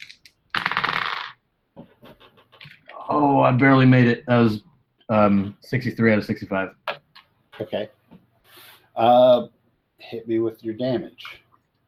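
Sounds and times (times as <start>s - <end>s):
dice being rolled: 0.0s - 1.4s
speech: 3.1s - 6.8s, 7.6s - 8.0s, 9.0s - 11.4s.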